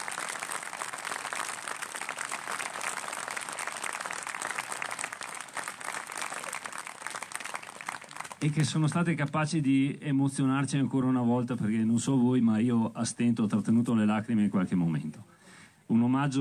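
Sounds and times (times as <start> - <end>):
audience applause at a tribute to an author and teacher: 0.0 - 8.8
speech: 8.4 - 15.3, 16.2 - 16.3.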